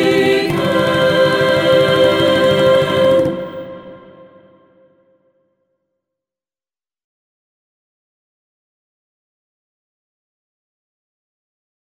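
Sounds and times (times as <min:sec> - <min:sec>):
a cappella singing of a Pawnee prayer: 0:00.0 - 0:04.9.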